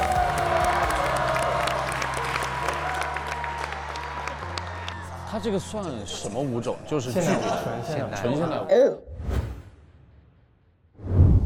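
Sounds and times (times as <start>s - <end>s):
audience applause: 0.0s - 5.8s
speech: 5.4s - 9.1s
laughter: 7.0s - 8.7s.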